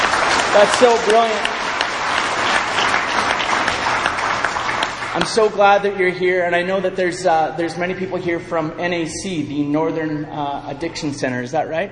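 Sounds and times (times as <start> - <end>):
audience applause: 0.0 - 5.6
speech: 0.5 - 1.5, 5.2 - 11.9.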